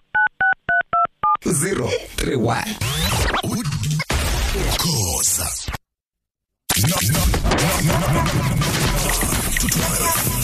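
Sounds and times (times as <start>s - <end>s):
telephone number being dialed with DTMF keypad tones: 0.1s - 1.4s
speech: 1.4s - 4.0s, 4.6s - 5.8s, 6.8s - 10.4s
laughter: 6.8s - 10.4s.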